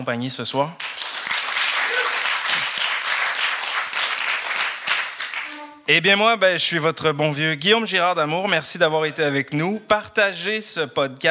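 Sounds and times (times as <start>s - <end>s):
speech: 0.0s - 1.0s, 5.9s - 11.2s
crowd applauding: 0.8s - 5.6s.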